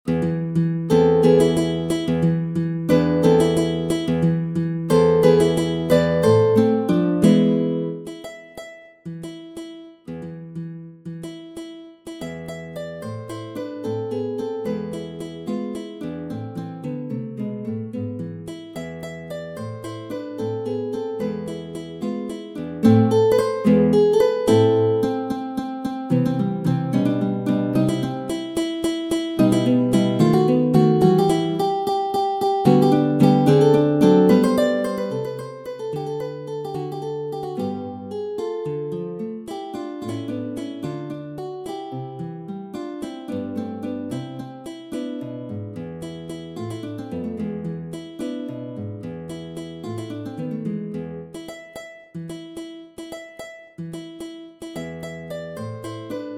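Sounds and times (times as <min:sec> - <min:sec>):
classical guitar: 0:00.0 - 0:56.3.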